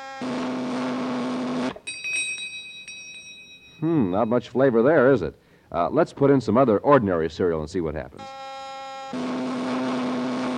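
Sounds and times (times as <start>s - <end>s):
flavor testing machine harsh electric buzz after button press: 0.0s - 1.8s, 8.2s - 10.5s
thin high-pitched ringing tone: 1.8s - 4.8s
speech: 3.8s - 8.4s.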